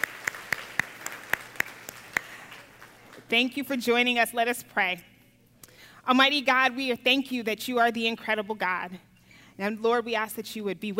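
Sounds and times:
audience applauding: 0.0s - 3.3s
speech: 3.3s - 5.1s, 6.1s - 10.9s.

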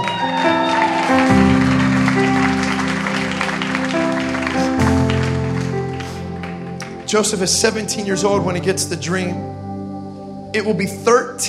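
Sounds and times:
audience clapping: 0.0s - 7.5s
speech: 7.1s - 9.6s, 10.5s - 11.4s.

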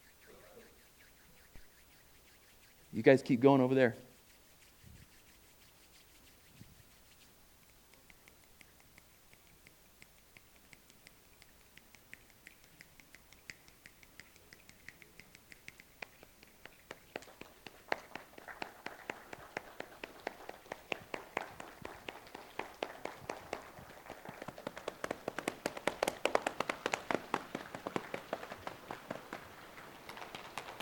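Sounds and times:
speech: 3.0s - 4.1s
group tapping and clapping hands imitating rain: 7.7s - 30.8s.

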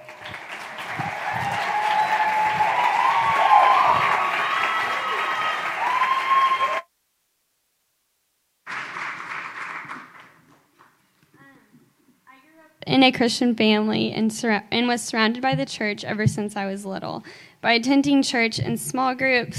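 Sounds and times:
crowd applause: 0.0s - 6.8s, 8.7s - 10.7s
crowd whooping and cheering: 0.0s - 6.8s
speech: 13.0s - 19.5s.

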